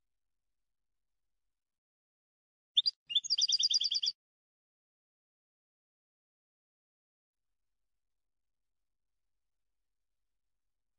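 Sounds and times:
European goldfinch song: 2.8 - 4.2.

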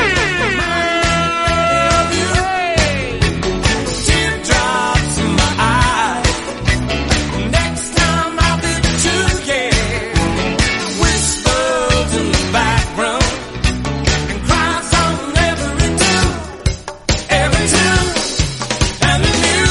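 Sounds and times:
wailing siren horn blast: 0.0 - 2.0
busy rhythmic music: 0.0 - 19.6.

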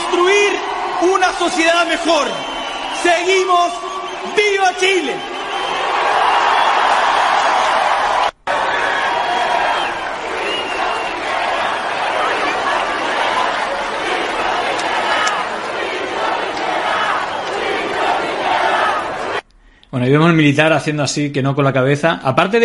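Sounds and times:
speech: 0.1 - 5.3, 19.9 - 22.6
crowd shouting slogans: 5.3 - 19.4.

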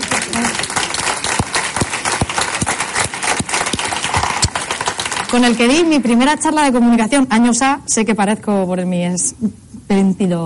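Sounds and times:
audience applause: 0.0 - 6.2
speech: 5.3 - 10.4.

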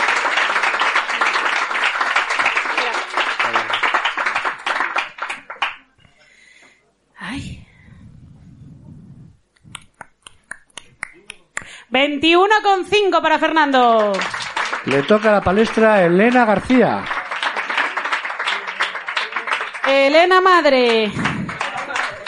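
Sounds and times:
audience applause: 0.0 - 6.0, 13.8 - 22.2
speech: 12.0 - 17.1, 19.9 - 21.3.

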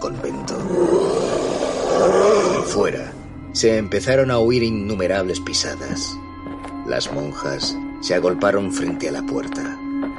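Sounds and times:
speech: 0.0 - 0.7, 2.6 - 6.2, 6.9 - 9.8
monster's bloodcurdling howl: 0.6 - 2.9.

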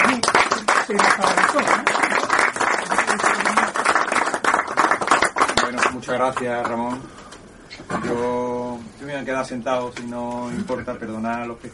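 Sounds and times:
crowd applauding: 0.0 - 6.5
speech: 0.9 - 2.1, 6.1 - 7.2, 7.8 - 11.7.

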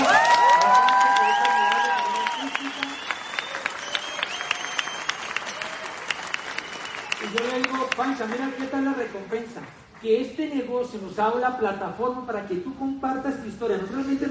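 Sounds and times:
whoops and cheering voices: 0.0 - 7.4
audience applause: 0.0 - 9.3
speech: 8.2 - 14.3.

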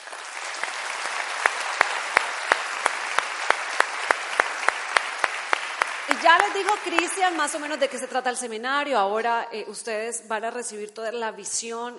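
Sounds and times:
audience applause: 0.0 - 8.2
speech: 6.1 - 11.9.

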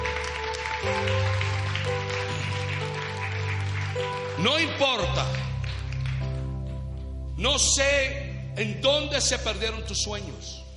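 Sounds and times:
audience applause: 0.0 - 6.5
speech: 4.4 - 5.5, 7.4 - 10.6.

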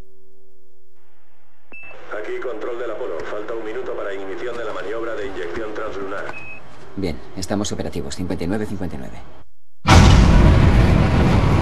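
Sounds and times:
Apollo 11 third-stage rocket engine firing: 9.9 - 11.6.

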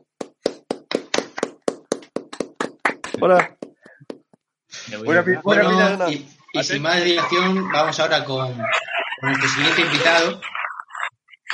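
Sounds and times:
hand clapping: 0.0 - 4.4
speech: 3.2 - 3.6, 4.9 - 10.6.

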